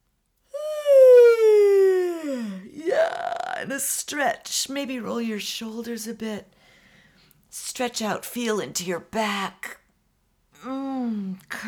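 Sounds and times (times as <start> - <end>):
person yawning: 0.5 - 3.7
speech: 3.6 - 6.6, 7.5 - 9.8, 10.6 - 11.6.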